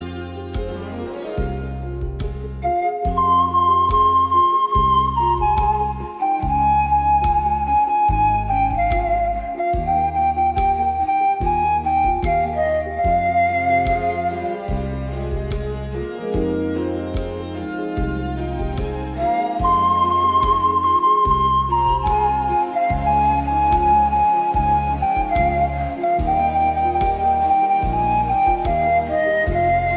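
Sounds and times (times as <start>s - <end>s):
pan flute: 0.0s - 29.9s.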